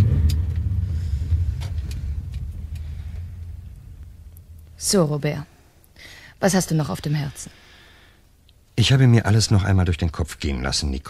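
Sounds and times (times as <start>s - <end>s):
droning road noise: 0.0s - 5.3s
car engine rumbling: 0.0s - 5.9s
speech: 4.8s - 5.5s, 6.4s - 7.7s, 8.8s - 11.0s.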